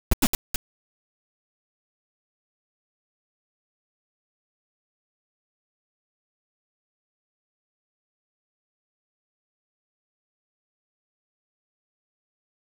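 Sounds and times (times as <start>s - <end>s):
8-bit rock music: 0.0s - 0.6s.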